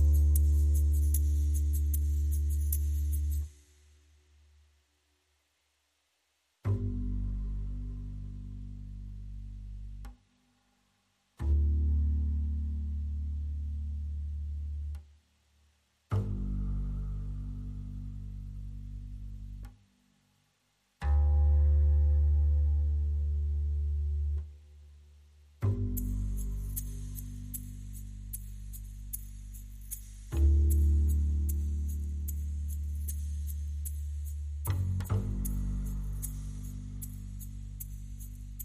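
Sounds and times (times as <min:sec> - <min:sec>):
percussion: 0:00.0 - 0:04.0, 0:25.6 - 0:38.6
bass: 0:00.0 - 0:38.6.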